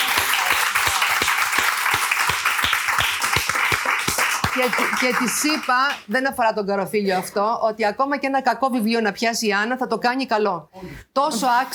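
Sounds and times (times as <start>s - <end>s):
audience applause: 0.0s - 6.0s
speech: 4.6s - 11.7s.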